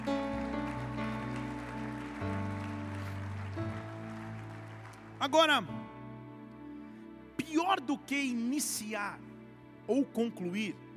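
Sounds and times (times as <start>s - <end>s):
audience applause: 0.0s - 5.7s
sustained keyboard chords: 0.0s - 10.0s
speech: 5.2s - 5.8s, 7.5s - 9.3s, 9.9s - 10.8s.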